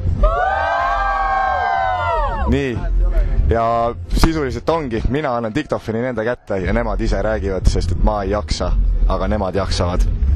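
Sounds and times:
group of children cheering and shouting: 0.0 - 3.0
speech: 2.5 - 10.2.

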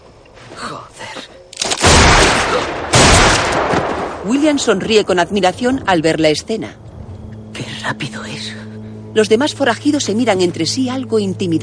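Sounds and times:
gunshots from a gunfight in a 2007 western film: 1.6 - 4.2
speech: 4.2 - 6.8, 7.8 - 8.6, 9.2 - 11.6.

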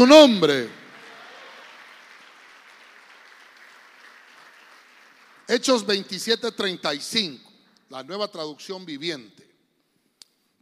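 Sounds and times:
speech: 0.0 - 0.8, 5.5 - 9.5
audience clapping: 0.1 - 6.2.

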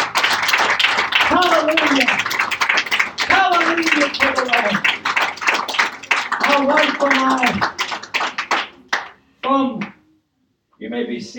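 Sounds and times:
audience hand clapping: 0.0 - 10.0
speech: 1.3 - 2.3, 6.6 - 7.8, 11.0 - 11.3.

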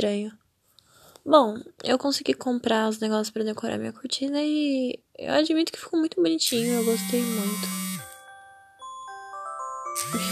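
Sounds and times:
speech: 0.0 - 0.4, 1.2 - 7.8, 10.0 - 10.3
phone alarm going off: 6.6 - 8.3.

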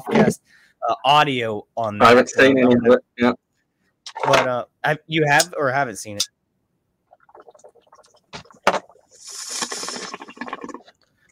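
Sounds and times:
speech: 0.0 - 3.4, 4.1 - 6.3
Turkish tobacco water pipe gurgling and bubbling: 7.1 - 11.0.

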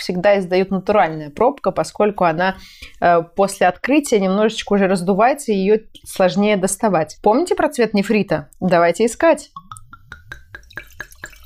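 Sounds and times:
speech: 0.0 - 9.6
translucent liquid pouring into a glass: 9.5 - 11.4.

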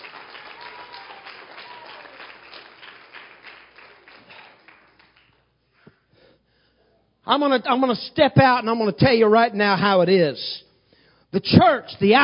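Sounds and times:
audience clapping in praise: 0.0 - 5.8
speech: 7.3 - 10.7, 11.3 - 12.2.

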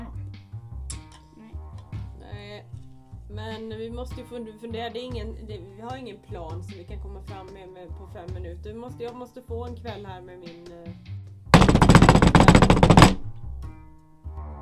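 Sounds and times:
speech: 2.6 - 11.1
desperate knocking on a door: 11.6 - 13.4.

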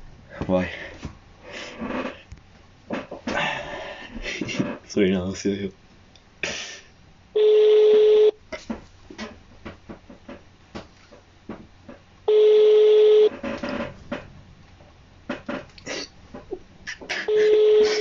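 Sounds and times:
speech: 0.5 - 1.1, 4.9 - 5.8
telephone ringback tones of a call placed during quarantine: 7.4 - 8.4, 12.3 - 13.3, 17.3 - 17.9.

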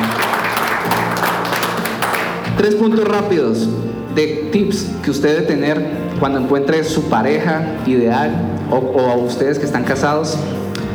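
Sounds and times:
audience applause: 0.0 - 3.2
speech: 2.6 - 10.6.

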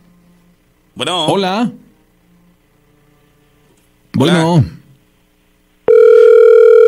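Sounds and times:
speech: 1.0 - 1.8, 4.1 - 4.8
telephone dial tone: 5.9 - 6.8.

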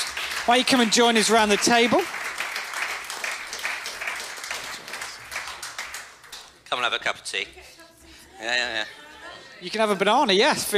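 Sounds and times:
audience round of applause: 0.0 - 6.6
speech: 0.5 - 2.2, 6.7 - 7.8, 8.4 - 9.0, 9.6 - 10.7.

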